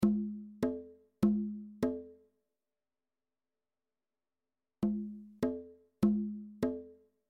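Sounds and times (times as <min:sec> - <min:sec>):
bongos: 0:00.0 - 0:02.2, 0:04.8 - 0:07.0.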